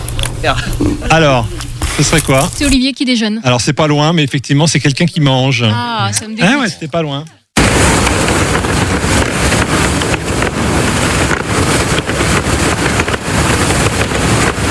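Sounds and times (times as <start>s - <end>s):
speech: 0.4s - 7.4s
wind in boat sails: 7.6s - 14.6s.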